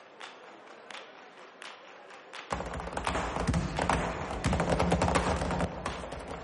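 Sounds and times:
flamenco heel stamping zapateado dance: 2.5s - 6.4s.

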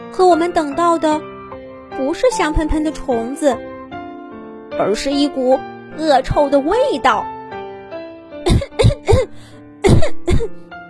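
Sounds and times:
speech: 0.1s - 1.3s, 2.0s - 3.7s, 4.8s - 7.3s, 9.9s - 10.7s
person coughing: 8.5s - 10.6s.

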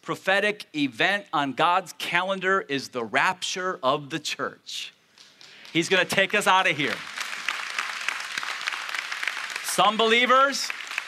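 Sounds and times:
speech: 0.0s - 5.0s, 5.7s - 7.1s, 9.8s - 10.8s
audience clapping: 5.1s - 11.0s.

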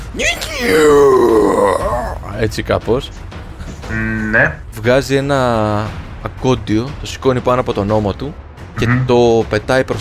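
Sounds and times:
speech: 0.2s - 0.8s, 2.4s - 9.9s
voice imitating a warrior's cry: 0.2s - 2.3s.

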